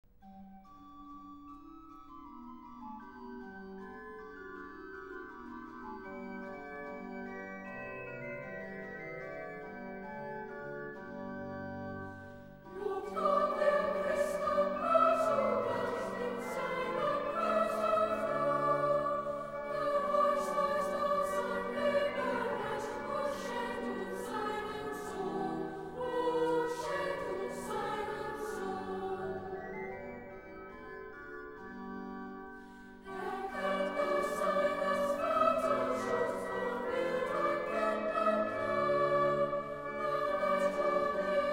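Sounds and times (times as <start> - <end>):
hymn: 12.7 - 30.0, 32.7 - 41.5.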